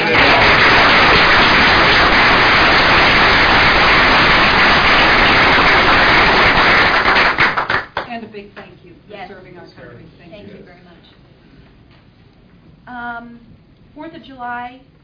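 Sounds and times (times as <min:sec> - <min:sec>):
applause: 0:00.0 - 0:08.2.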